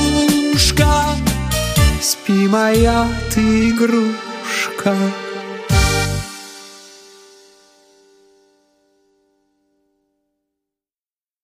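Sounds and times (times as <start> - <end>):
tango: 0.0 - 6.4.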